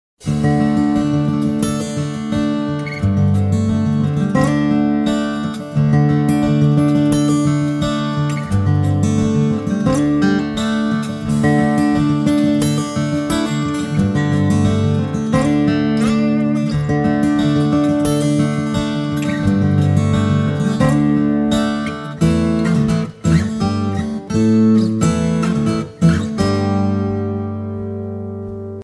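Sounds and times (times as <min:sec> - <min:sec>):
blues music: 0:00.2 - 0:28.8.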